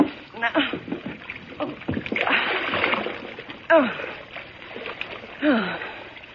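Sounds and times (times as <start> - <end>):
water churning and sloshing: 0.0 - 6.3
heavy splash of someone falling into water: 1.7 - 3.4.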